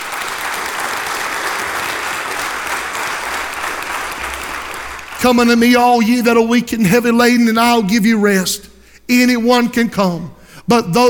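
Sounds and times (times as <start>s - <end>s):
audience applause: 0.0s - 5.6s
speech: 5.2s - 11.0s.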